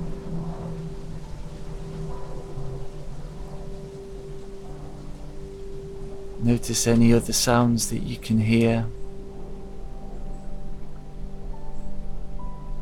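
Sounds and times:
airplane passing overhead: 0.0 - 12.8
speech: 6.4 - 9.0.

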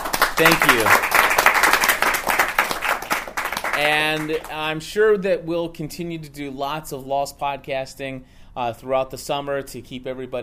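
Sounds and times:
group applauding: 0.0 - 4.7
speech: 0.4 - 1.2, 3.8 - 10.4.

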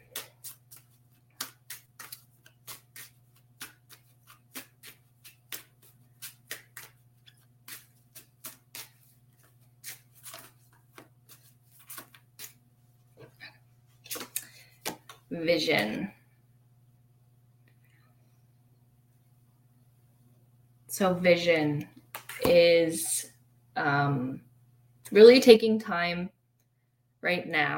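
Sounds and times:
oracle cards shuffled and drawn: 0.0 - 12.6, 14.0 - 15.9, 22.0 - 22.6
speech: 15.3 - 16.2, 21.0 - 23.1, 23.8 - 24.5, 25.1 - 26.3, 27.2 - 27.7.

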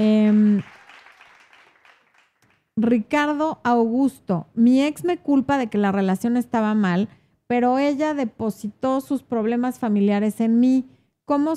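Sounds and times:
applause of many hands clapping: 0.0 - 3.4
speech: 2.8 - 11.5.

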